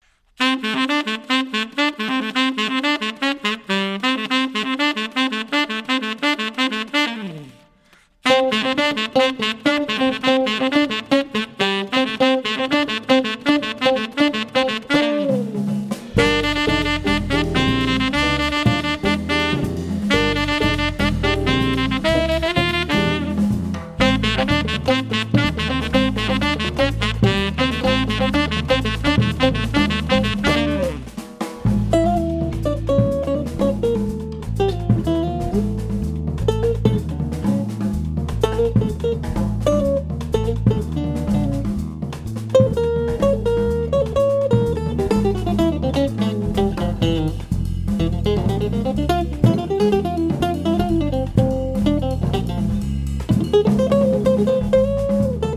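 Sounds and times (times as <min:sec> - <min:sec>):
Latin ensemble quartet: 0:00.4 - 0:55.5.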